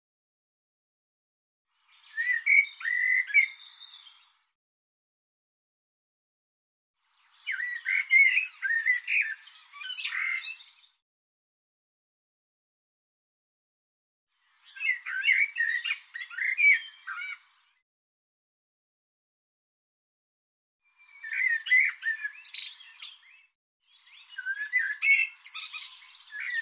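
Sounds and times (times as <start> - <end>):
bird warbling song: 1.8 - 4.5, 7.1 - 11.0, 14.4 - 17.8, 21.0 - 26.5.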